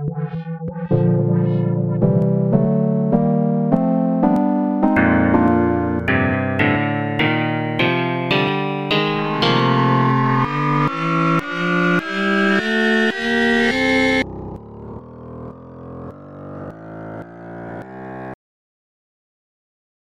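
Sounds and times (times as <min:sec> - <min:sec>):
F major scale played: 0:00.1 - 0:14.3.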